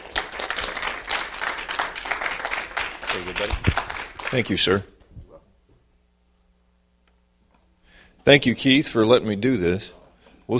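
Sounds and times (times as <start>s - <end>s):
church congregation applause welcoming a guest speaker at a morning service: 0.0s - 4.8s
speech: 3.1s - 4.9s, 8.2s - 10.5s.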